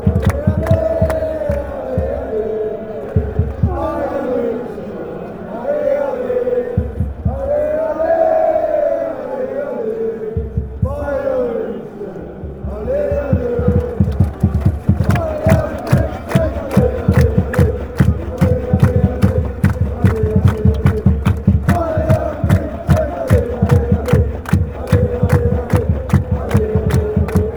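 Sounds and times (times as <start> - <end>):
fans chanting: 0.0 - 27.5.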